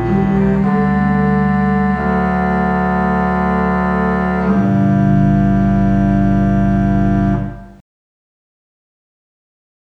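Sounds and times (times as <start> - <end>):
Klais pipe organ: 0.0 - 7.8.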